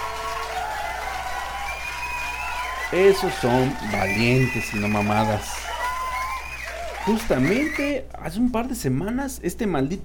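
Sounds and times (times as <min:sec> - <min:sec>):
applause: 0:00.0 - 0:08.0
cheering: 0:00.0 - 0:08.0
speech: 0:02.9 - 0:05.7, 0:07.1 - 0:10.0.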